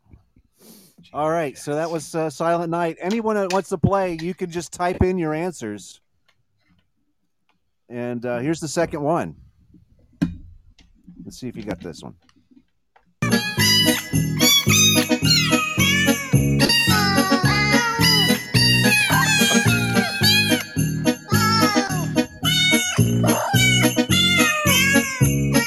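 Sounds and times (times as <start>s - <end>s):
speech: 1.0s - 6.0s, 7.9s - 9.4s, 11.2s - 12.3s
real cats meowing: 13.3s - 25.6s.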